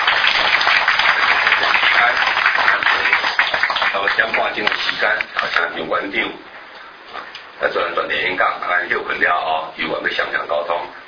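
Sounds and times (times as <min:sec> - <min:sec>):
audience applause: 0:00.0 - 0:05.1
speech: 0:04.0 - 0:06.6, 0:07.6 - 0:11.0.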